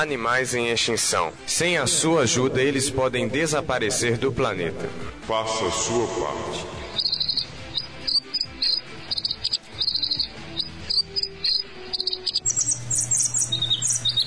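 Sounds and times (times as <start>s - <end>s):
speech: 0.0s - 7.1s
Synallaxis bird singing: 6.6s - 14.2s.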